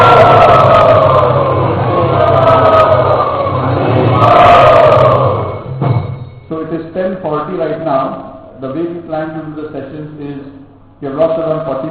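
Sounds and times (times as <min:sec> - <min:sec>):
crowd chanting in welcome of a visiting teacher in Kuala Lumpur: 0:00.0 - 0:05.7
speech: 0:10.7 - 0:11.9.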